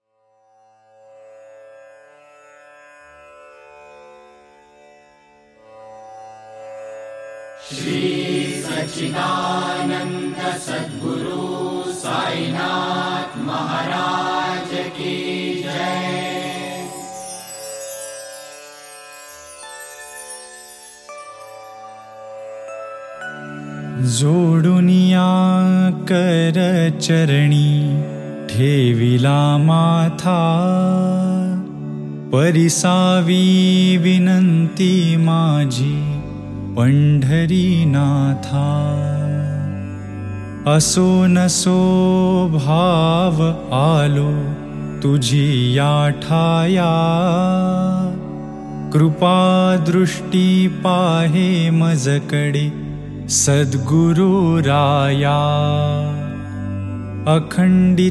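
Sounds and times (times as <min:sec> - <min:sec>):
devotional song: 0:07.6 - 0:58.0.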